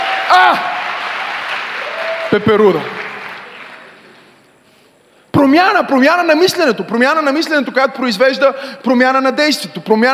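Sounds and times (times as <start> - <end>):
audience applauding: 0.0 - 4.1
speech: 0.3 - 0.7, 2.3 - 3.0, 5.4 - 10.1.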